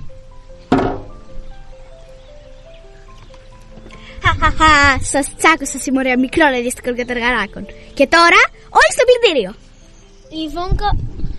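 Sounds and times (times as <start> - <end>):
door being shut: 0.7 - 1.4
speech: 4.5 - 9.6, 10.3 - 11.2.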